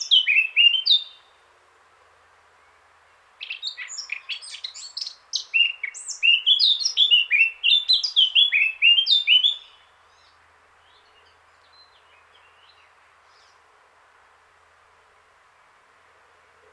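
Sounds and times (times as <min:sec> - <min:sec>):
Eurasian blackcap singing: 0:00.0 - 0:01.3, 0:03.4 - 0:09.8.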